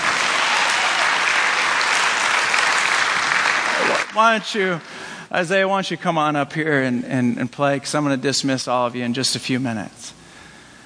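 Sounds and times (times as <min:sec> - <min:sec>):
crowd clapping: 0:00.0 - 0:05.0
speech: 0:04.2 - 0:10.2.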